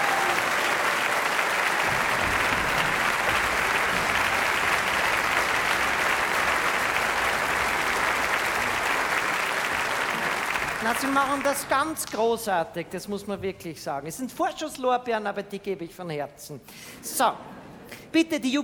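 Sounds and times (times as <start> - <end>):
audience applause: 0.0 - 12.1
speech: 10.9 - 18.6.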